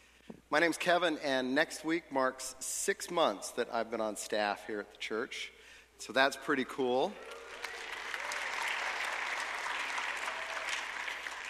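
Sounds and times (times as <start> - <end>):
speech: 0.5 - 7.4
audience applause: 7.2 - 11.4.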